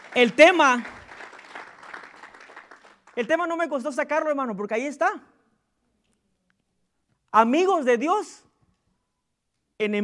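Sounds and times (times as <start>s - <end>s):
audience applause: 0.0s - 3.2s
speech: 0.2s - 1.0s, 3.2s - 5.3s, 7.3s - 8.5s, 9.8s - 10.0s.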